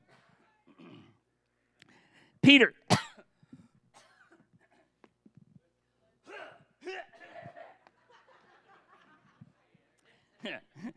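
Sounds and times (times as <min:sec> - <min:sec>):
person coughing, blamed on allergies, at a Sunday morning worship service: 0:00.7 - 0:01.2, 0:02.9 - 0:03.3, 0:03.9 - 0:04.8
speech: 0:02.4 - 0:03.0
laughter: 0:07.1 - 0:09.7.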